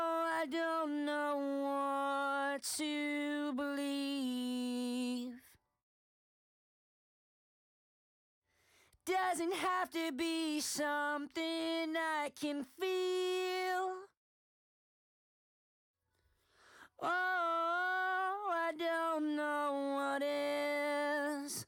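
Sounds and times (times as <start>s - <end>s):
lead vocals: 0.0s - 5.4s, 9.1s - 14.1s, 17.0s - 21.6s.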